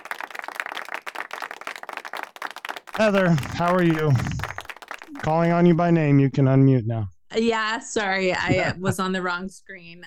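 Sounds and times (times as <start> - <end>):
audience clapping: 0.0 - 6.0
speech: 3.0 - 4.4, 5.2 - 10.0
laughter: 3.0 - 5.9, 8.3 - 9.2.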